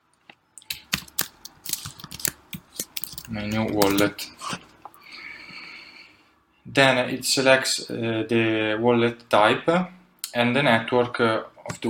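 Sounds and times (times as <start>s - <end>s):
keystrokes on a computer keyboard typing a wallet name: 0.6s - 4.1s
speech: 3.3s - 4.4s, 6.7s - 11.8s.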